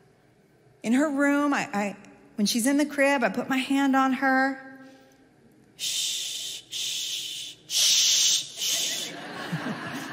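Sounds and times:
speech: 0.8s - 4.6s, 5.8s - 6.2s
person shushing to soothe a crying baby: 5.8s - 9.1s
laughter: 8.7s - 10.1s.

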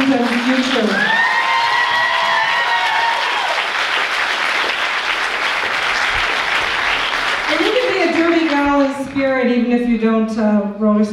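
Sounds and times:
crowd applauding: 0.0s - 8.9s
whistles and cheers: 1.0s - 3.7s
speech: 9.7s - 11.1s.

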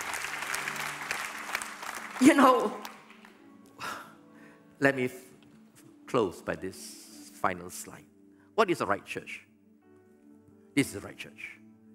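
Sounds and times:
audience clapping: 0.0s - 3.4s
speech: 2.2s - 2.9s, 4.8s - 5.3s, 6.1s - 9.5s, 10.8s - 11.6s.

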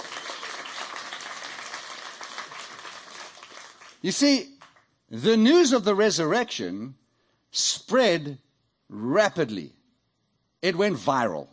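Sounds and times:
audience round of applause: 0.0s - 4.0s
speech: 4.0s - 4.5s, 5.1s - 9.8s, 10.6s - 11.5s.

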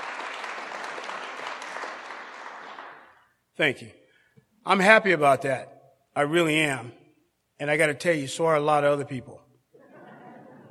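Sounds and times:
applause at an Alcoholics Anonymous meeting: 0.0s - 3.3s
speech: 3.6s - 4.0s, 4.6s - 7.0s, 7.6s - 9.4s
laughter: 9.8s - 10.6s.

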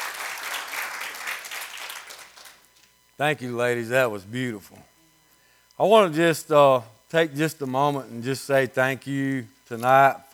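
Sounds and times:
applause: 0.0s - 2.7s
speech: 3.2s - 4.9s, 5.8s - 10.3s.

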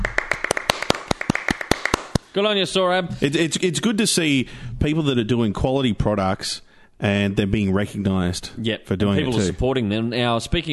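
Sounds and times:
hand clapping: 0.0s - 2.3s
speech: 2.3s - 10.7s.

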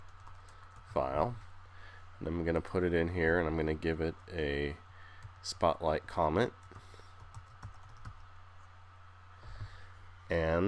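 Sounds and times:
typing on a computer keyboard: 0.0s - 0.9s, 6.6s - 8.2s
speech: 1.0s - 1.5s, 2.2s - 4.8s, 5.4s - 6.6s, 10.3s - 10.6s.

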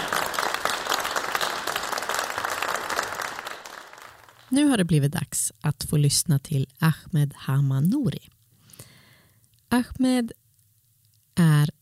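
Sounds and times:
audience applause: 0.0s - 4.5s
speech: 4.5s - 8.4s, 9.7s - 10.4s.

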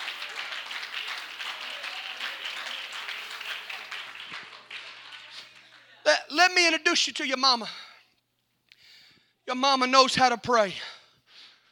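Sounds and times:
audience hand clapping: 0.0s - 6.1s
speech: 6.3s - 7.8s, 9.5s - 10.9s.

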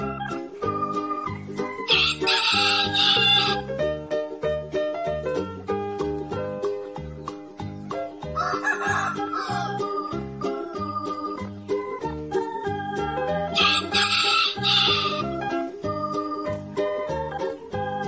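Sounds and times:
bouncy rhythmic musical backing: 0.0s - 18.0s
rooster crowing: 1.9s - 3.6s, 8.4s - 9.8s, 13.6s - 15.2s.

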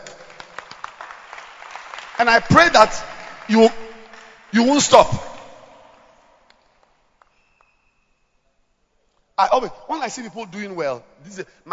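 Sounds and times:
audience applause: 0.0s - 5.1s
speech: 2.2s - 3.8s, 4.5s - 5.3s, 9.4s - 11.7s.

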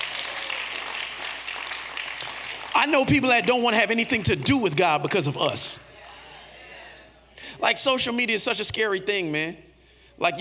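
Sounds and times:
crowd clapping: 0.0s - 6.2s
speech: 2.8s - 5.9s, 7.6s - 10.4s.

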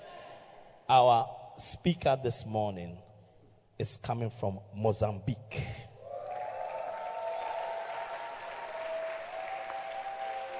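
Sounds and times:
speech: 0.9s - 3.0s, 3.8s - 5.8s
audience clapping: 6.1s - 10.5s.

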